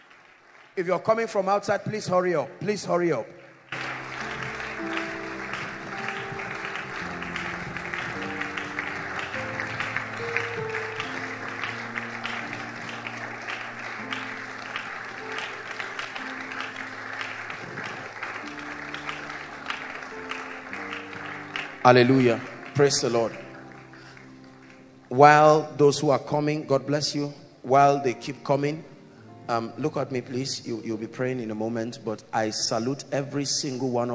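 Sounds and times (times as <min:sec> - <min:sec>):
audience clapping: 0:00.0 - 0:02.0, 0:03.6 - 0:25.7
speech: 0:00.8 - 0:03.4, 0:21.8 - 0:23.4, 0:25.1 - 0:28.9, 0:29.5 - 0:34.1.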